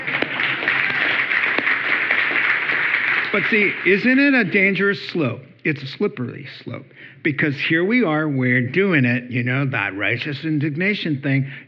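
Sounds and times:
crowd applause: 0.0 - 4.7
speech: 3.3 - 11.6.

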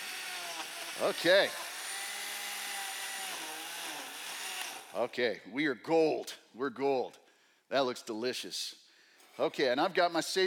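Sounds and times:
blender blending a smoothie: 0.0 - 5.0
speech: 1.0 - 1.6, 4.9 - 8.8, 9.4 - 10.4.

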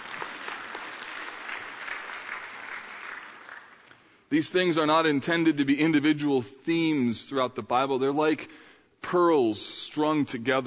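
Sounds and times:
audience applause: 0.0 - 3.9
speech: 4.3 - 10.6.

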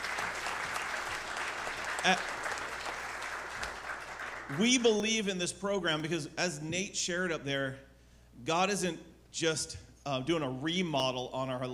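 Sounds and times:
audience applause: 0.0 - 4.9
speech: 2.0 - 2.3, 4.5 - 11.7.

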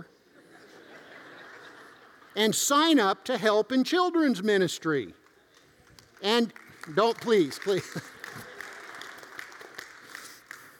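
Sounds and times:
laughter: 0.2 - 2.4, 7.6 - 9.3
speech: 2.4 - 5.2, 6.2 - 8.1
people clapping in church: 5.2 - 10.7.

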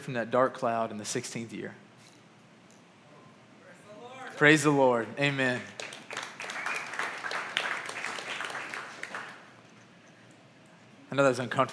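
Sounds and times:
speech: 0.0 - 1.8, 4.4 - 5.8, 11.1 - 11.7
scattered clapping: 5.4 - 9.5.

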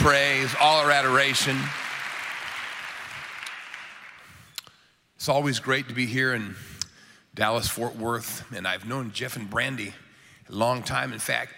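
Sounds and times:
speech: 0.0 - 1.9, 5.2 - 6.7, 7.4 - 11.5
audience round of applause: 0.0 - 4.4.

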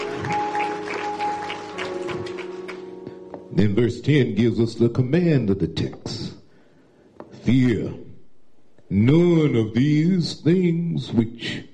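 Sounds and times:
crowd clapping hands in praise: 0.0 - 3.2
speech: 3.6 - 6.1, 7.5 - 8.0, 8.9 - 11.7.

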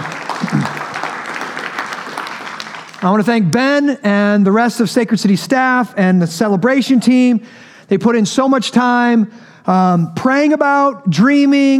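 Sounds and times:
audience clapping: 0.0 - 3.4
speech: 3.0 - 11.7.

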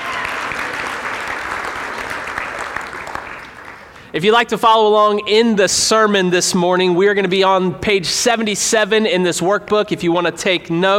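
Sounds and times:
audience applause: 0.0 - 4.1
speech: 4.1 - 10.9.

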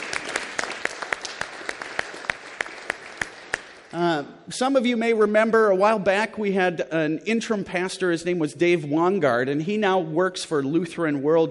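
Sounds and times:
audience applause: 0.0 - 3.9
speech: 3.9 - 11.4.

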